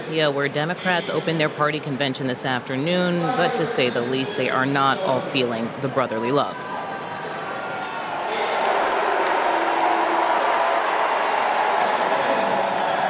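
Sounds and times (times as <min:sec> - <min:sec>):
speech: 0:00.1 - 0:06.8
convention crowd booing: 0:06.6 - 0:13.0.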